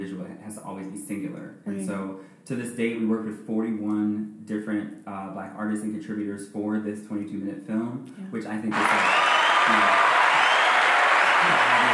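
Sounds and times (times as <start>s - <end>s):
speech: 0.1s - 10.2s
audience applause after a film screening: 8.7s - 11.9s.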